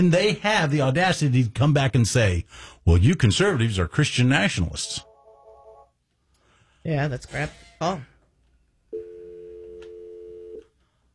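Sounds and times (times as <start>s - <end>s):
speech: 0.0s - 5.1s, 6.8s - 8.1s
telephone busy signal: 9.0s - 10.6s.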